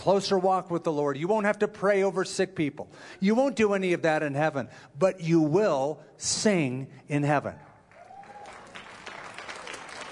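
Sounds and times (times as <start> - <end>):
speech: 0.0 - 7.7
group of singers clapping: 7.7 - 10.1.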